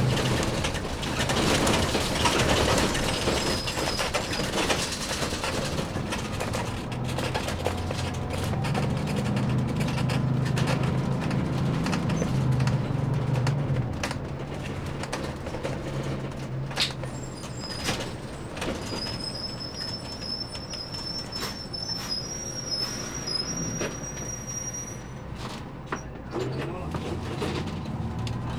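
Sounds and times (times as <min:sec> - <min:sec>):
bus ride on board in New York City: 0:00.0 - 0:28.5.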